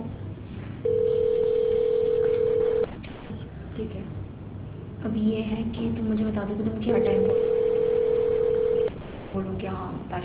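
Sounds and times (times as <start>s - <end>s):
low-pitched electronic phone ringing tone on the line: 0.8s - 2.9s, 7.0s - 8.9s
speech: 5.2s - 7.6s, 9.4s - 10.2s.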